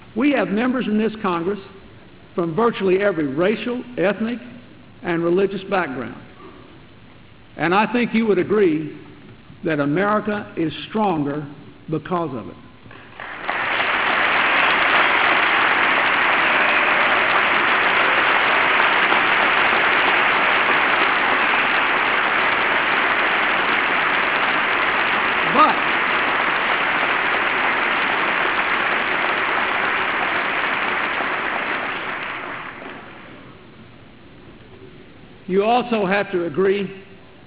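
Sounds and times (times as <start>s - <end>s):
speech: 0.2s - 1.8s, 2.4s - 6.3s, 7.6s - 9.0s, 9.6s - 12.6s, 35.6s - 37.0s
crowd applauding: 13.0s - 33.5s.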